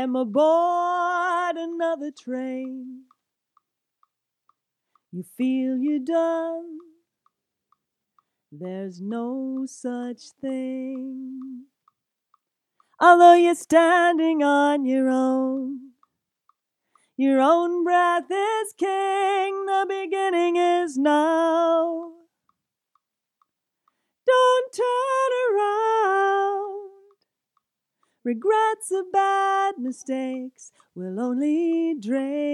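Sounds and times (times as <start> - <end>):
lead vocal: 0.0 - 3.2, 5.2 - 7.0, 8.6 - 11.7, 13.0 - 16.0, 17.2 - 22.3, 24.2 - 27.2, 28.2 - 32.5.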